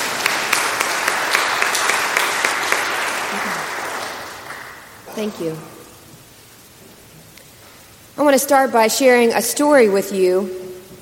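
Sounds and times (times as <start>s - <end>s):
audience clapping: 0.0s - 5.7s
speech: 5.2s - 5.8s, 8.2s - 10.6s.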